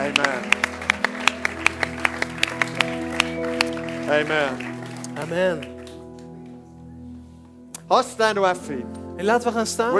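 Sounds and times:
audience applause: 0.0s - 6.0s
speech: 4.1s - 4.7s, 5.3s - 5.7s, 7.9s - 9.9s.

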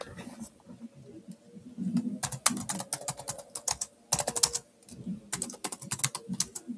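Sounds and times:
keyboard typing: 1.9s - 6.7s.

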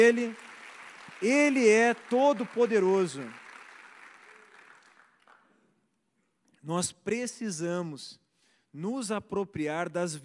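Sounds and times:
speech: 0.0s - 0.5s, 1.2s - 3.4s, 6.6s - 10.2s
audience applause: 0.0s - 5.4s.

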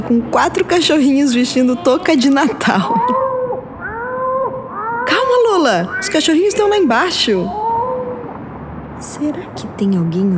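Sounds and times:
laughter: 0.0s - 3.3s
speech: 0.1s - 3.3s, 5.7s - 7.6s, 9.0s - 10.3s
cat meowing on balcony: 1.6s - 8.2s.

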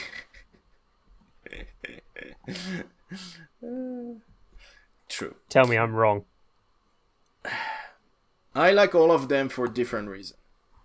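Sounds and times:
person coughing: 1.5s - 3.5s
speech: 2.4s - 3.8s, 5.2s - 6.3s, 8.6s - 10.4s.

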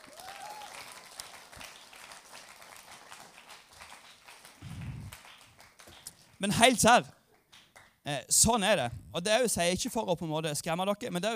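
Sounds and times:
audience applause: 0.0s - 6.5s
speech: 6.4s - 7.2s, 8.0s - 11.3s.

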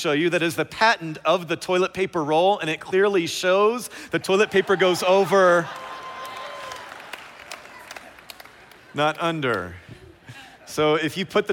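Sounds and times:
speech: 0.0s - 5.8s, 9.0s - 10.0s, 10.7s - 11.5s
faint clapping from a church audience: 5.6s - 9.8s.

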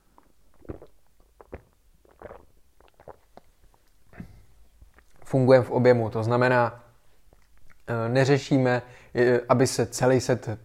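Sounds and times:
person taking a quick drink: 0.0s - 5.3s
speech: 5.3s - 6.8s, 7.9s - 10.6s.

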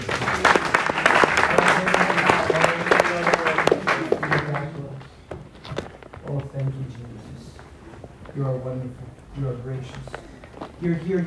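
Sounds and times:
audience clapping: 0.0s - 5.1s
speech: 10.8s - 11.2s.

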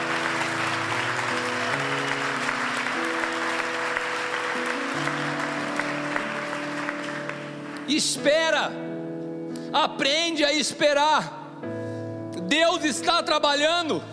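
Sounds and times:
audience applauding: 0.0s - 8.2s
speech: 7.9s - 9.0s, 9.7s - 11.7s, 12.5s - 14.1s.

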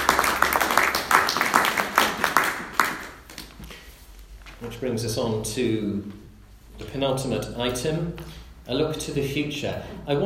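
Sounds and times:
audience applause: 0.0s - 3.2s
speech: 4.8s - 6.2s, 6.8s - 10.2s.

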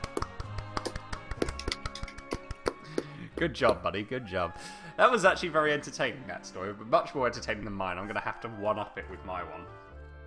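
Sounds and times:
soft polite golf clapping from a few people: 0.0s - 3.8s
speech: 3.4s - 9.9s.

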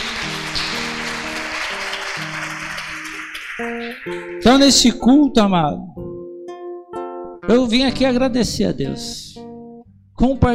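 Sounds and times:
audience applause: 0.0s - 4.6s
speech: 3.6s - 5.9s, 7.5s - 9.2s, 10.2s - 10.5s.

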